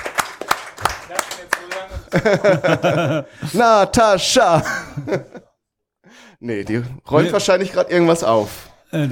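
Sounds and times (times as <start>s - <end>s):
audience clapping continuously: 0.0s - 2.4s
speech: 1.4s - 5.4s, 6.4s - 9.1s
laughter: 1.8s - 3.8s, 4.5s - 5.5s.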